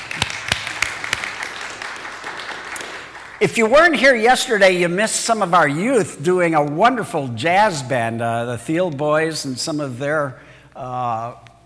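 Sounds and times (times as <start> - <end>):
sparse clapping: 0.0 - 3.5
hiss: 0.0 - 11.6
speech: 3.4 - 11.4.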